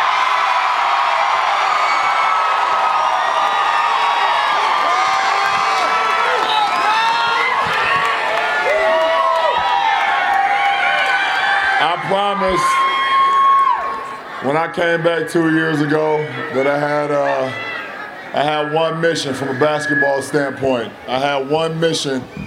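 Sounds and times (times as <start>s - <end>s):
huge stadium crowd roaring and cheering: 0.0s - 22.4s
speech: 12.0s - 12.9s, 14.4s - 17.7s, 18.3s - 22.4s.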